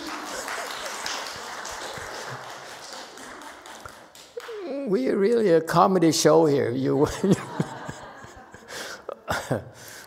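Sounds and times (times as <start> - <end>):
laughter: 0.0 - 3.8, 6.7 - 9.8
crowd applauding: 0.0 - 5.0
speech: 4.9 - 7.4.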